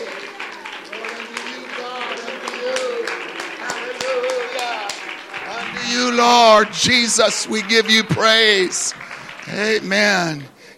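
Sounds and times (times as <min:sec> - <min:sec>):
audience clapping: 0:00.0 - 0:10.7
speech: 0:06.2 - 0:10.5.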